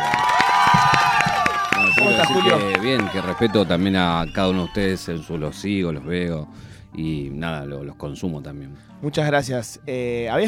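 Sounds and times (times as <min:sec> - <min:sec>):
studio audience applause: 0:00.0 - 0:05.4
voices cheering: 0:00.0 - 0:06.2
high whistle-like tone: 0:01.7 - 0:06.1
speech: 0:02.2 - 0:10.4.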